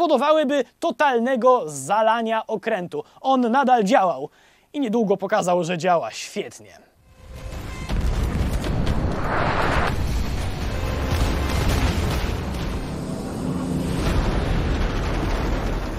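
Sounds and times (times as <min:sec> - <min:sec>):
speech: 0:00.0 - 0:06.9
heavy naval cannon fire and explosions: 0:07.5 - 0:15.9.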